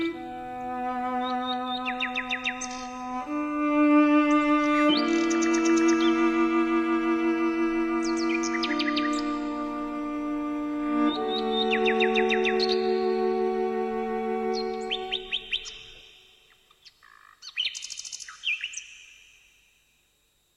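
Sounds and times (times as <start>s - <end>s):
sustained mellow cello melody: 0.0s - 15.6s
nightingale song: 0.0s - 20.5s.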